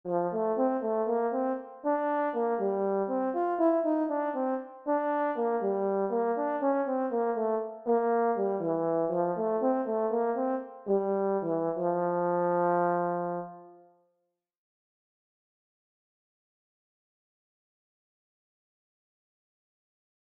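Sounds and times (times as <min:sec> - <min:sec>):
horn: 0:00.1 - 0:14.0.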